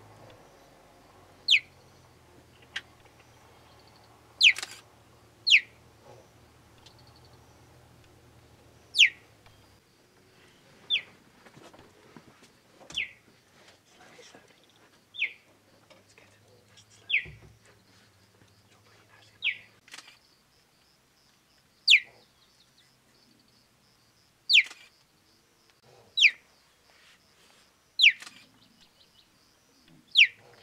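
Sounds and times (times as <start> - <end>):
cheetah chirping: 0.2 - 11.2, 12.9 - 13.2, 14.5 - 20.5, 21.8 - 23.6, 24.5 - 25.0, 26.0 - 26.7, 28.0 - 30.6
faint rustling: 1.8 - 20.2.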